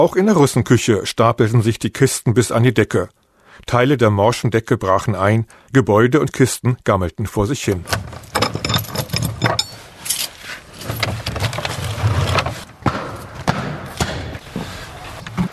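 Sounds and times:
speech: 0.0 - 8.3
keys unlocking the door to the Russenküche: 7.7 - 12.5.

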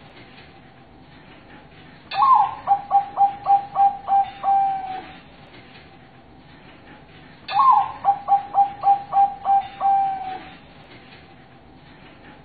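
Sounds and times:
zebra dove cooing master song: 2.1 - 5.2, 7.5 - 10.6.

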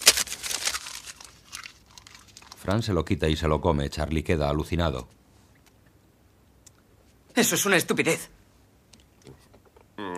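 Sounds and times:
paper sheet crinkling as it is pulled out: 0.0 - 2.7
speech: 2.6 - 5.2, 7.4 - 8.4.

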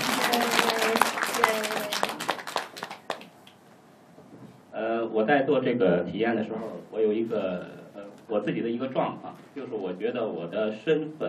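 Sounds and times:
audience applause: 0.0 - 3.3
speech: 5.2 - 11.2.

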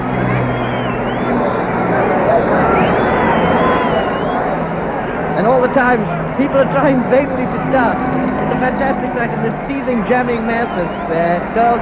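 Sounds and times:
celebrating crowd noise in central London: 0.0 - 11.8
thin high whistle: 0.3 - 1.4, 2.6 - 4.5
speech: 5.7 - 11.8.

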